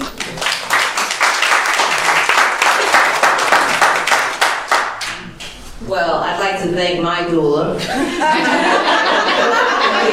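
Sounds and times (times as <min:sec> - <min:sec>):
audience applause: 0:00.0 - 0:05.2
speech: 0:06.5 - 0:10.1
laughter: 0:07.8 - 0:10.1.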